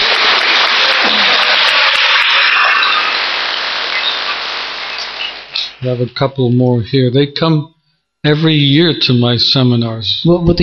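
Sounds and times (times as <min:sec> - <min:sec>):
crowd applauding: 0:00.0 - 0:06.2
speech: 0:05.8 - 0:10.6.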